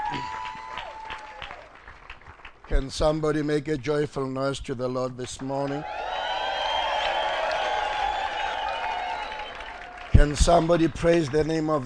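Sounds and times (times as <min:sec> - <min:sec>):
audience applauding: 0:00.0 - 0:02.9, 0:05.6 - 0:11.8
speech: 0:02.7 - 0:06.1, 0:10.2 - 0:11.8.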